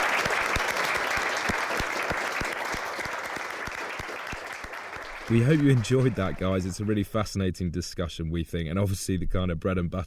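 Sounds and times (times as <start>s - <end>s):
audience applause: 0.0s - 7.0s
speech: 5.3s - 10.0s.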